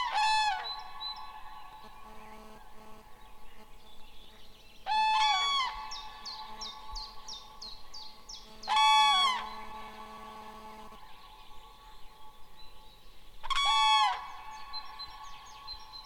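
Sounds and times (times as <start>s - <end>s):
Grus grus calling: 0.0s - 2.1s, 4.9s - 7.6s, 8.6s - 11.8s, 13.4s - 16.0s.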